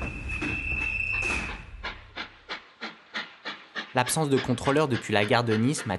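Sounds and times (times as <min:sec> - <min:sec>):
train starting to move: 0:00.0 - 0:04.0
speech: 0:03.9 - 0:05.9.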